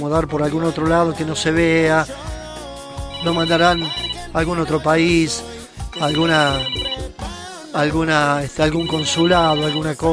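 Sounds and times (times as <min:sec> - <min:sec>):
speech: 0:00.0 - 0:02.3, 0:03.2 - 0:10.1
telephone ringing with a melodic ringtone: 0:03.1 - 0:05.2, 0:05.9 - 0:07.2, 0:08.6 - 0:10.1.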